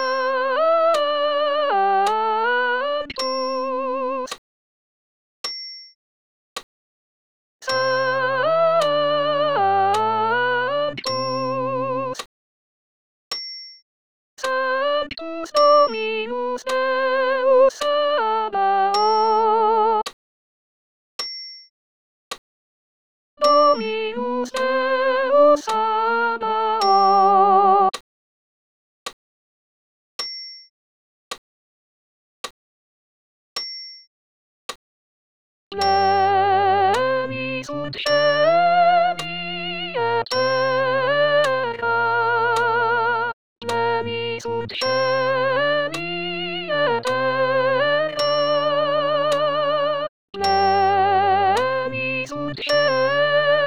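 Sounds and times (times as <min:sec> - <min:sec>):
soprano singing a sacred piece: 0:00.2 - 0:04.3, 0:07.7 - 0:12.2, 0:14.5 - 0:20.0, 0:23.4 - 0:27.9, 0:35.8 - 0:53.6.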